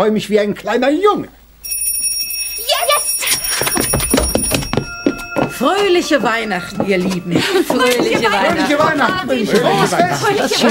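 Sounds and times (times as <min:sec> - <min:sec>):
speech: 0:00.0 - 0:01.8, 0:05.6 - 0:10.7
small bell ringing: 0:01.6 - 0:09.4
laughter: 0:06.6 - 0:10.7.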